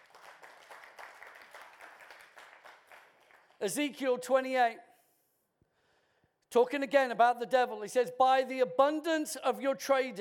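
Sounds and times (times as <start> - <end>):
audience clapping: 0.0 - 3.8
speech: 3.6 - 4.9, 6.5 - 10.1.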